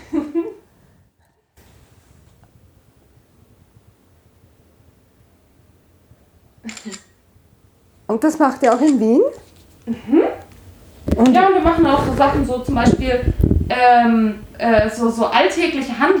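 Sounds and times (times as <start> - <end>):
low hiss: 0.0 - 16.1
camera shutter clicks: 6.7 - 7.1, 8.6 - 9.1
speech: 8.1 - 10.1, 11.2 - 16.1.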